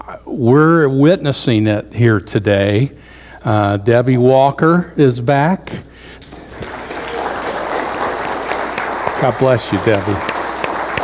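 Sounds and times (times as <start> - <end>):
speech: 0.1 - 6.2, 9.2 - 10.3
applause in a church for returning congregation members: 6.2 - 11.0.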